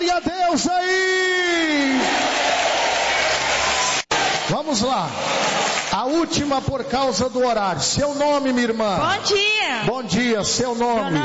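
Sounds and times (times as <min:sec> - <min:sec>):
speech: 0:00.5 - 0:01.0, 0:04.7 - 0:05.3, 0:06.0 - 0:11.2
church congregation clapping in praise during a service: 0:00.9 - 0:06.7.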